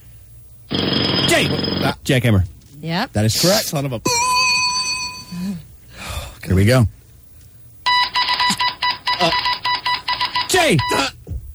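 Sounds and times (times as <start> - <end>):
speech: 1.4 - 4.4, 6.4 - 7.0, 9.2 - 9.4, 10.5 - 11.2
Morse code beeps: 4.1 - 5.5, 7.9 - 11.1.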